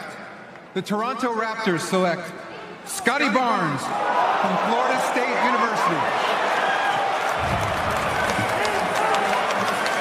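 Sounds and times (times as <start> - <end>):
speech: 0.7 - 6.5
crowd cheering at draft: 3.8 - 9.9
scattered claps: 7.2 - 9.9.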